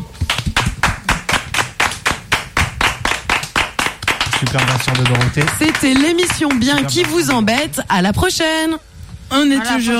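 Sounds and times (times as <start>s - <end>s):
hand clapping: 0.2s - 7.7s
speech: 4.4s - 9.9s.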